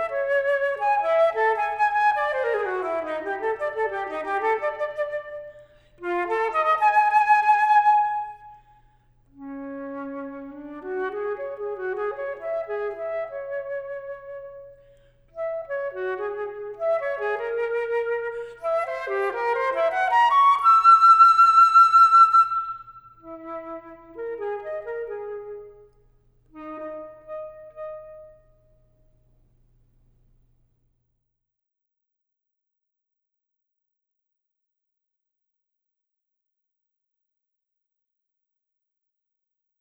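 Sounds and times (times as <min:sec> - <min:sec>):
flute piece: 0:00.0 - 0:08.7, 0:09.4 - 0:28.8.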